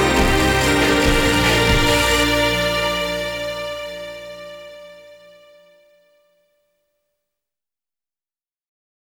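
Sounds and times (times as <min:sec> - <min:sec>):
karaoke backing track: 0:00.0 - 0:04.0.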